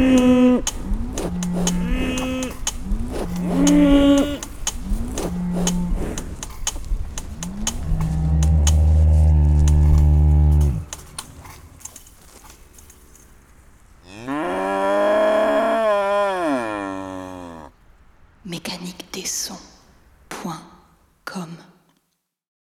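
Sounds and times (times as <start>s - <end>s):
cows in Vitry-en-Artois: 0.0s - 17.8s.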